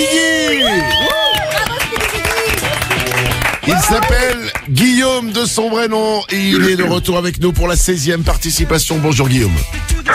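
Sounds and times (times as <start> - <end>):
audience applause: 0.0 - 4.7
speech: 3.8 - 10.1.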